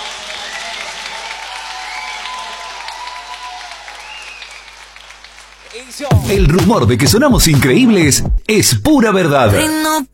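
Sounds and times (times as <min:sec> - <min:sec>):
audience clapping for a band after a live performance: 0:00.0 - 0:07.8
speech: 0:05.8 - 0:10.1.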